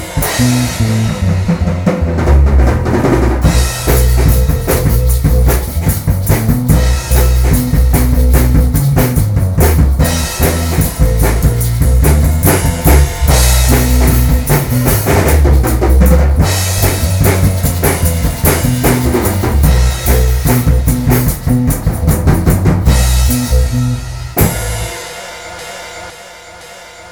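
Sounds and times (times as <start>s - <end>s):
groove interlude music: 0.0s - 27.0s.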